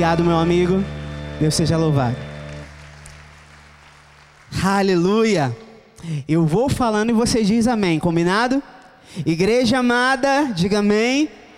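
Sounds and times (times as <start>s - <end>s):
speech: 0.0s - 2.3s, 4.6s - 11.4s
held low musical tone: 0.0s - 2.7s
audience applause: 0.0s - 4.8s.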